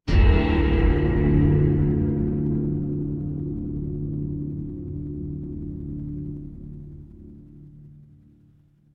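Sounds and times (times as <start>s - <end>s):
horror stinger: 0.1s - 7.2s.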